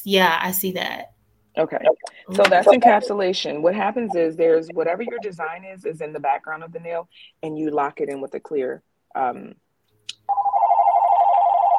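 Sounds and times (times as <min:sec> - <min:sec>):
speech: 0:00.0 - 0:09.6
desk telephone ringing: 0:10.3 - 0:11.7.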